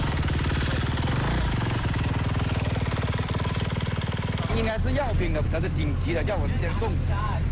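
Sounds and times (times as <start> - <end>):
motorcycle engine running: 0.0 - 7.4
speech: 4.8 - 7.4.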